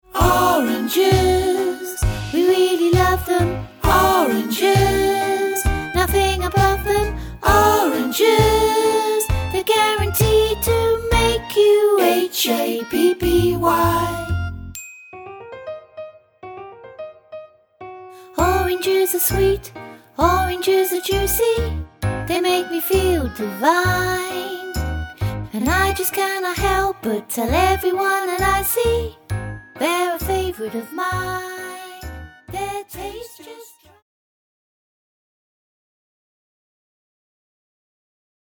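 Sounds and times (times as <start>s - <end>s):
vocals: 0.0s - 14.4s, 18.2s - 29.2s, 29.8s - 34.0s.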